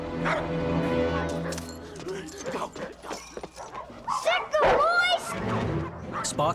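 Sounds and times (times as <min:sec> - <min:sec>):
released caged dogs barking, yipping and whimpering: 0:00.2 - 0:06.5.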